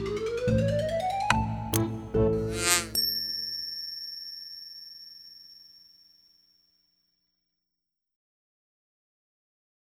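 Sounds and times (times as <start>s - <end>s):
music box melody: 0.2s - 5.7s.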